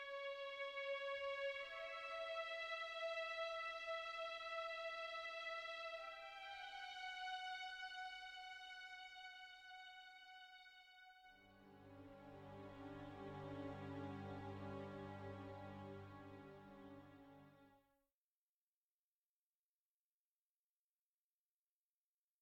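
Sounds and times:
menu music strings stem: 0:00.0 - 0:17.7.

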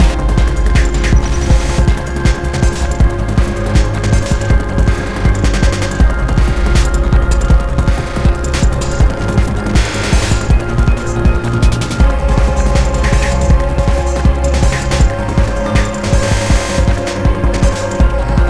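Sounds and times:
fast murky water flowing: 0:00.0 - 0:18.4.

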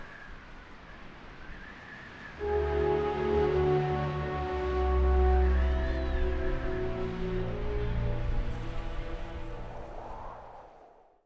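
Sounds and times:
background music for an entrance: 0:02.4 - 0:10.3.

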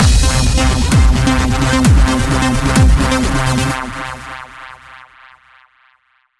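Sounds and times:
action boss battle music: 0:00.0 - 0:04.9.

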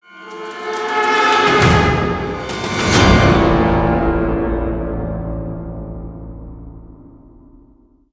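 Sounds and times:
combat intro music: 0:00.1 - 0:07.7.

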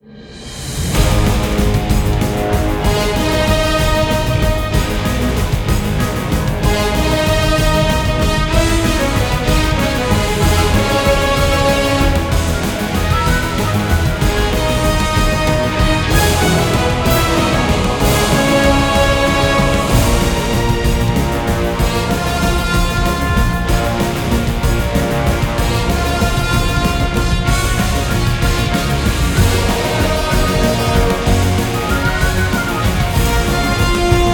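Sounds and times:
game final boss music: 0:00.8 - 0:34.3.

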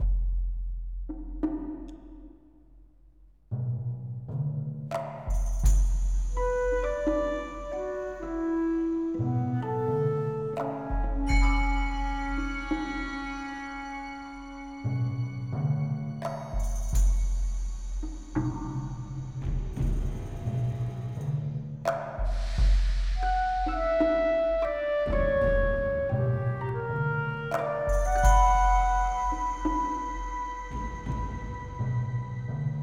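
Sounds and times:
percussion music: 0:00.0 - 0:03.3, 0:04.2 - 0:32.8.

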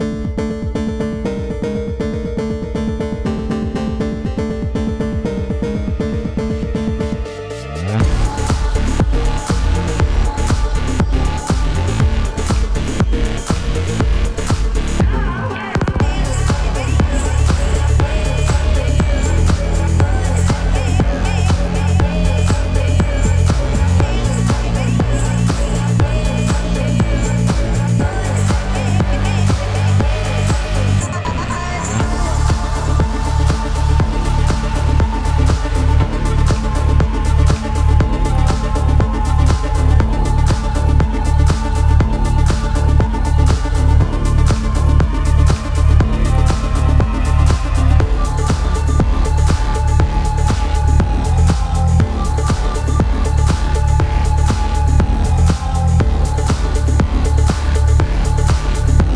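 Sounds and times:
phonk music: 0:00.0 - 0:59.1.

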